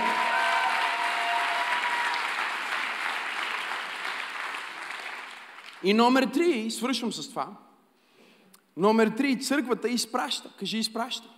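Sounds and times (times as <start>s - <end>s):
audience clapping: 0.0s - 6.0s
speech: 5.8s - 7.7s, 8.8s - 11.3s.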